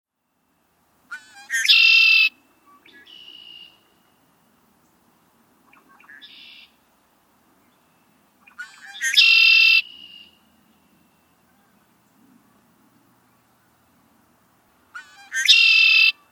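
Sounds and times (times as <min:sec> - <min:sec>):
Red-winged blackbird sharp dry check calls: 0:01.1 - 0:03.8, 0:08.4 - 0:10.4, 0:14.9 - 0:16.3.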